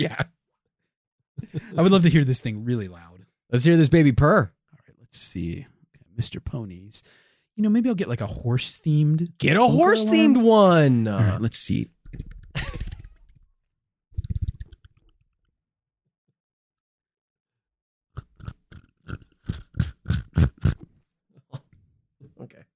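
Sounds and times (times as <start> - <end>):
speech: 0.0 - 0.3, 1.5 - 12.7
laughter: 1.4 - 2.2
slurping: 18.2 - 20.8.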